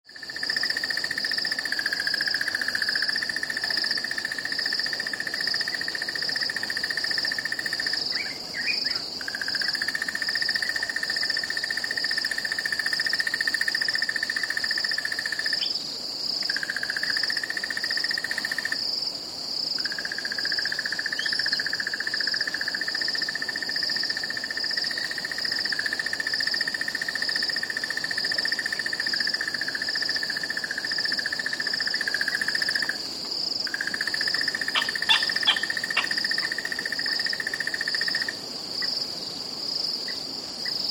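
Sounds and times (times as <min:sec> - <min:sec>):
insects: 0:00.0 - 0:40.8
birds: 0:34.5 - 0:36.6.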